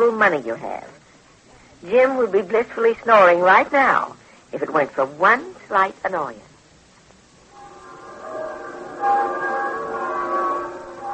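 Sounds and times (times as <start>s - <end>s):
speech: 0.0s - 1.0s, 1.8s - 6.5s
church bells ringing on Sunday morning: 7.5s - 11.1s.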